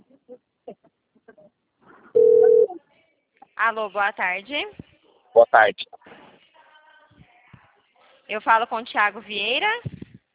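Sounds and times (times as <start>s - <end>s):
faint telephone dialing beeps: 2.2s - 2.7s
loud steady telephone ringback tone: 2.2s - 2.7s
speech: 3.7s - 4.8s, 5.4s - 5.9s, 8.3s - 9.9s.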